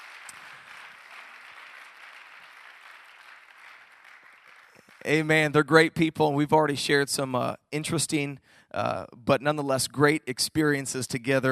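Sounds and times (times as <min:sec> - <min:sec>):
audience applause: 0:00.0 - 0:05.3
speech: 0:05.0 - 0:11.5.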